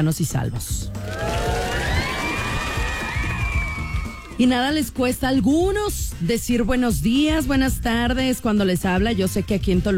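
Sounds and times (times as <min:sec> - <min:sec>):
speech: 0:00.0 - 0:01.3, 0:04.4 - 0:09.9
crowd cheering: 0:01.0 - 0:04.5
people shouting and whooping: 0:01.0 - 0:04.5.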